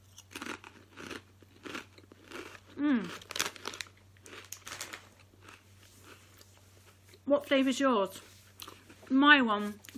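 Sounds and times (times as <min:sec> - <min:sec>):
ready salted crisps from a bag crunching: 0:00.0 - 0:07.2
speech: 0:02.8 - 0:03.3, 0:07.3 - 0:08.3, 0:09.1 - 0:09.9.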